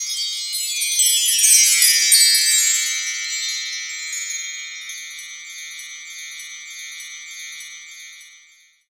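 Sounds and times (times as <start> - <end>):
wind chimes: 0.0 - 8.8.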